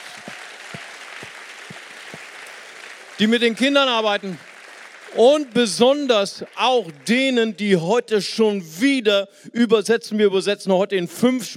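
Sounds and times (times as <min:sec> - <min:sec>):
audience applause for volunteers: 0:00.0 - 0:07.8
speech: 0:03.2 - 0:04.5, 0:05.2 - 0:11.5.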